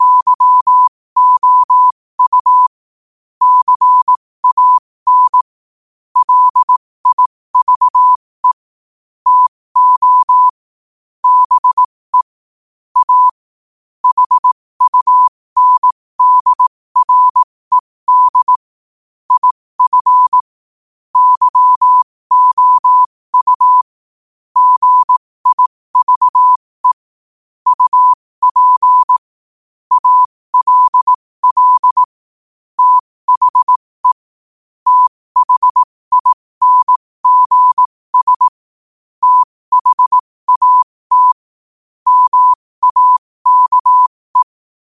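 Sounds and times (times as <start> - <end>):
morse code at 5 wpm: 0.0 - 2.7, 3.4 - 5.5, 6.2 - 8.7, 9.3 - 10.6, 11.2 - 12.4, 13.0 - 13.4, 14.0 - 18.6, 19.3 - 20.5, 21.2 - 24.0, 24.6 - 29.3, 29.9 - 32.2, 32.8 - 34.2, 34.8 - 38.6, 39.2 - 41.4, 42.0 - 44.6.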